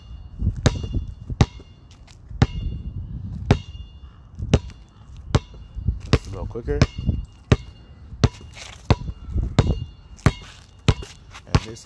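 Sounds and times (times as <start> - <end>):
basketball dribbled slowly: 0.5 - 1.8, 2.4 - 2.8, 3.4 - 3.8, 4.5 - 11.8
speech: 6.5 - 7.1, 11.7 - 11.8.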